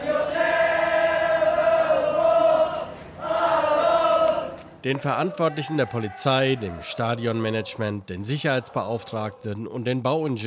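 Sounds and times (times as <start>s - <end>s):
crowd singing football club anthem outside the courthouse: 0.0s - 4.8s
speech: 4.8s - 10.4s.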